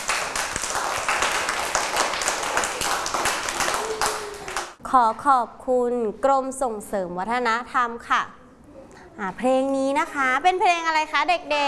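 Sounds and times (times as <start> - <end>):
audience clapping: 0.0 - 4.8
speech: 4.9 - 8.4, 9.2 - 11.6.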